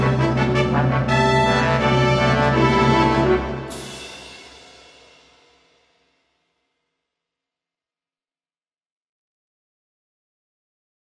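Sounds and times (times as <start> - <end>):
symphony orchestra: 0.0 - 4.4.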